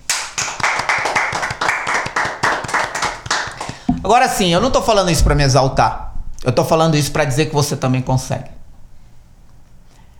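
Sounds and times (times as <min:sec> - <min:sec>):
one person clapping hands: 0:00.0 - 0:04.1
speech: 0:04.1 - 0:08.6.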